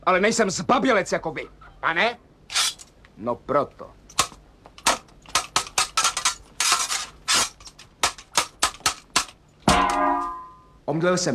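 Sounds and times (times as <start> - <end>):
speech: 0.0 - 2.6, 3.2 - 4.0, 10.9 - 11.3
heavy kitchen frying pan striking a man with metallic knocks and clatters: 4.2 - 10.6.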